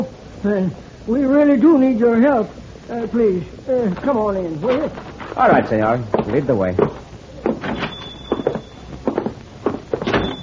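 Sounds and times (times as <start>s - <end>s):
speech: 0.0s - 7.0s
door opening: 6.2s - 10.4s
thin high squeak: 7.7s - 8.9s, 10.1s - 10.4s.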